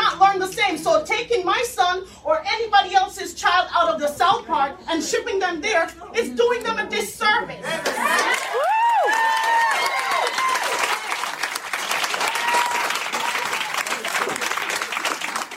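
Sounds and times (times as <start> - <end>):
speech: 0.4 - 9.2
enthusiastic applause and cheering: 7.8 - 15.5.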